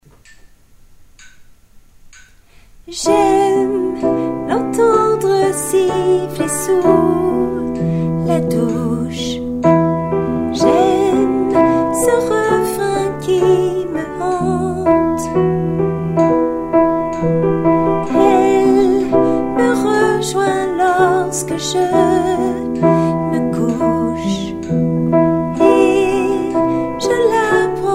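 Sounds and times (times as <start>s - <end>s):
soprano singing: 2.9s - 27.9s.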